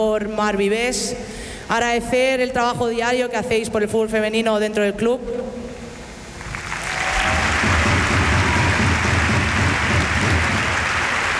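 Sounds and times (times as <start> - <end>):
speech: 0.0 - 5.4
audience applause: 6.4 - 11.3.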